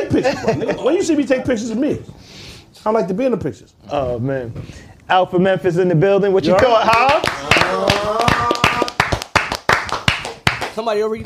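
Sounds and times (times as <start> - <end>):
laughter: 0.0 - 1.2
speech: 0.1 - 2.2, 2.8 - 7.9, 10.8 - 11.2
hand claps: 6.5 - 10.8.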